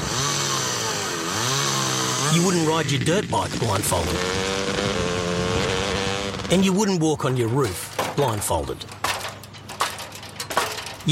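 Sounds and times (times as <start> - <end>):
chainsaw running: 0.0 - 6.6
speech: 2.4 - 5.0, 6.5 - 9.0.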